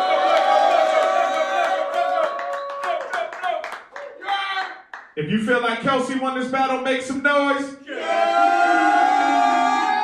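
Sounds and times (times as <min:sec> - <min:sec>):
crowd cheering: 0:00.0 - 0:05.0, 0:07.9 - 0:10.0
speech: 0:05.2 - 0:08.5.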